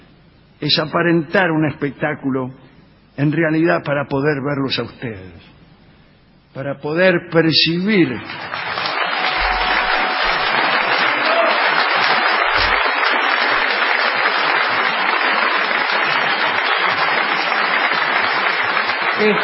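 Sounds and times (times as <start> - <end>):
speech: 0.6 - 5.6, 6.6 - 8.6, 19.2 - 19.4
theatre audience applauding: 8.2 - 19.4.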